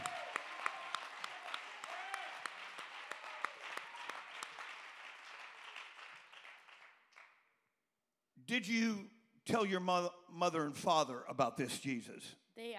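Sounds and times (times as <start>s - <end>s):
crowd clapping: 0.0s - 7.5s
speech: 8.5s - 12.4s.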